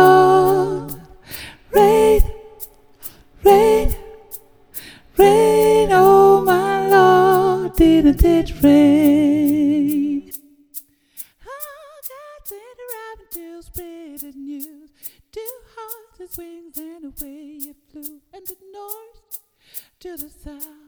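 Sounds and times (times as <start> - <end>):
alto voice singing gospel: 0.0 - 10.7, 11.4 - 19.0.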